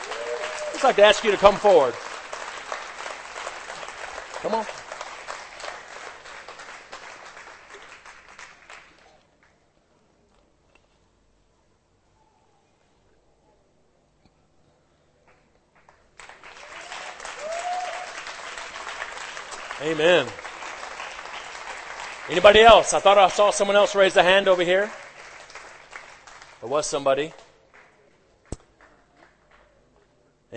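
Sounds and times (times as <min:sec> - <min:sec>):
audience applauding: 0:00.0 - 0:09.2, 0:15.8 - 0:28.0
speech: 0:00.8 - 0:02.0, 0:04.4 - 0:04.8, 0:19.9 - 0:20.4, 0:22.3 - 0:25.0, 0:26.6 - 0:27.4.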